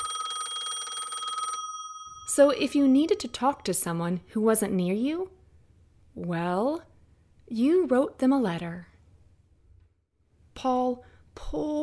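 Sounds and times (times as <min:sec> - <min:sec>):
telephone bell ringing: 0:00.0 - 0:03.4
speech: 0:02.4 - 0:05.4, 0:06.2 - 0:06.9, 0:07.5 - 0:08.9, 0:10.6 - 0:11.8.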